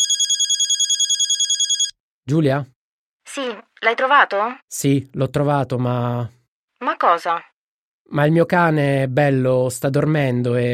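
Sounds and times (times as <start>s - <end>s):
telephone ringing: 0.0s - 2.0s
speech: 2.3s - 6.4s, 7.0s - 7.5s, 8.1s - 10.7s.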